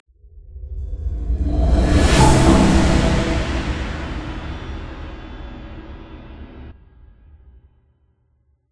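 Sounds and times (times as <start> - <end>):
transition end sound: 1.0 - 6.7.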